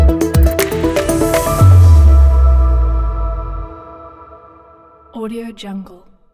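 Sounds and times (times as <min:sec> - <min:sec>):
high technology opener logo: 0:00.2 - 0:05.0.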